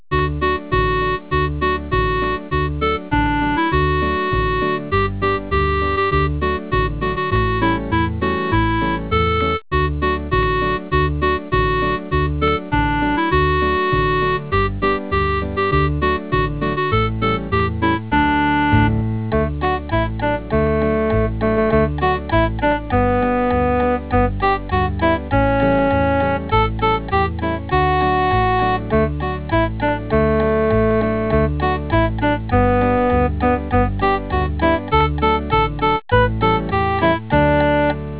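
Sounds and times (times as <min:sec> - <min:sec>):
Christmas song: 0:00.1 - 0:38.1.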